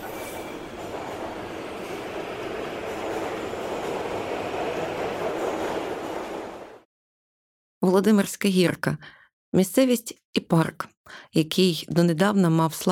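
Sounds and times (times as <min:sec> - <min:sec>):
metro train departing from station: 0:00.0 - 0:06.8
speech: 0:07.9 - 0:12.9.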